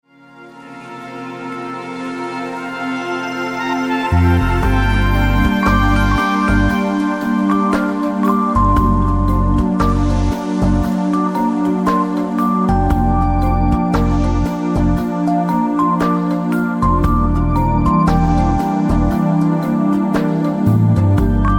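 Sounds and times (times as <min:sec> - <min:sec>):
swinging soul music: 0:00.1 - 0:21.5.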